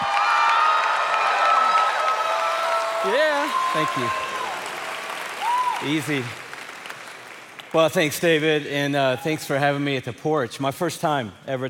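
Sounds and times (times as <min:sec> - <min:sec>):
audience cheering and shouting: 0:00.0 - 0:06.7
audience applause welcoming a guest speaker: 0:00.0 - 0:08.1
speech: 0:03.0 - 0:04.3, 0:05.8 - 0:06.4, 0:07.7 - 0:11.6.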